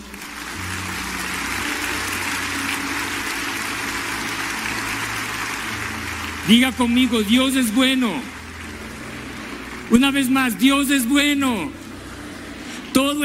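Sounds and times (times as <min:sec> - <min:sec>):
audience applause: 0:00.0 - 0:12.8
speech: 0:06.5 - 0:08.4, 0:09.9 - 0:11.8, 0:13.0 - 0:13.2.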